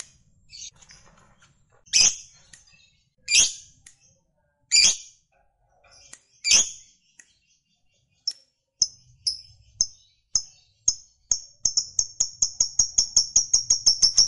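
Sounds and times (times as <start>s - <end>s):
lovebird song: 1.9s - 3.8s, 6.0s - 6.9s, 8.2s - 14.2s.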